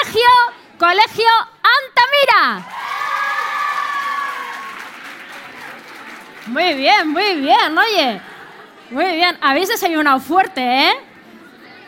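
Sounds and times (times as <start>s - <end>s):
speech: 0.1s - 1.6s, 2.4s - 2.8s, 6.4s - 8.3s, 8.9s - 11.0s
schoolgirls applauding and cheering: 2.6s - 7.5s.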